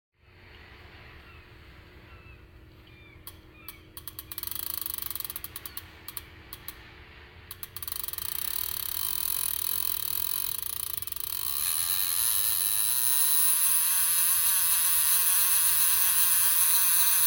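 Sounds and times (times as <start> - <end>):
fishing reel: 3.7 - 6.9, 7.5 - 17.2.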